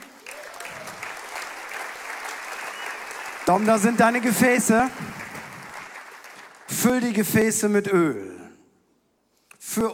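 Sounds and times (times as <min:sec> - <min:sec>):
audience applause: 0:00.0 - 0:07.0
speech: 0:03.5 - 0:05.2, 0:06.8 - 0:08.4, 0:09.8 - 0:09.9.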